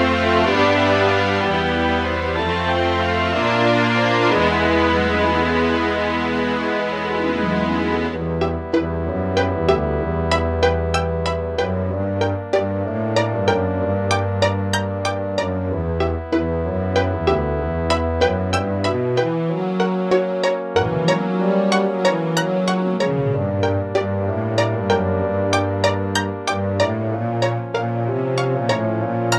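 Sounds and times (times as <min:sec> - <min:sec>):
synthesizer sound card music: 0:00.0 - 0:29.3.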